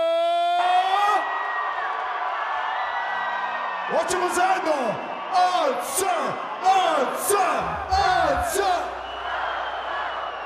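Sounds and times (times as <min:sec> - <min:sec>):
large crowd screaming and cheering at a packed concert: 0:00.0 - 0:10.4
speech: 0:03.9 - 0:09.0
shrill whistles: 0:07.8 - 0:10.4.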